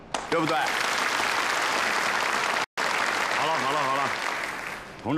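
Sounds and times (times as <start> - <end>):
applause: 0.1 - 5.0.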